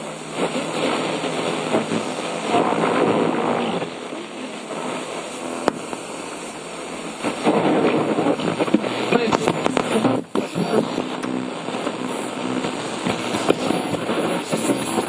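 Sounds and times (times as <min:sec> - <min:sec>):
radio wave noise: 0:00.0 - 0:15.0.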